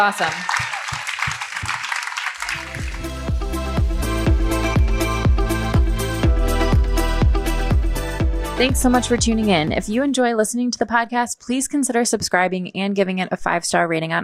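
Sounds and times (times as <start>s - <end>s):
speech: 0.0s - 0.7s, 8.6s - 14.2s
audience applause: 0.0s - 3.3s
upbeat music with a steady thumping beat: 0.1s - 10.0s.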